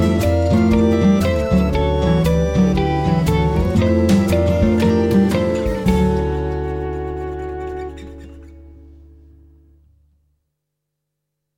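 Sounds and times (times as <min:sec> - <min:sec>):
swing ballad: 0:00.0 - 0:09.2.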